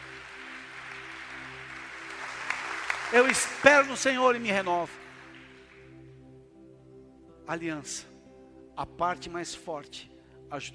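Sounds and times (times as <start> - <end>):
audience applauding: 0.0 - 5.9
speech: 3.1 - 5.0, 7.5 - 8.1, 8.8 - 10.7.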